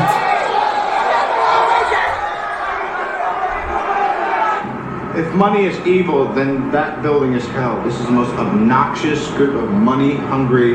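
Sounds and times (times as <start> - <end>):
crowd of people screaming on Wall Street: 0.0 - 5.1
speech: 5.3 - 10.7.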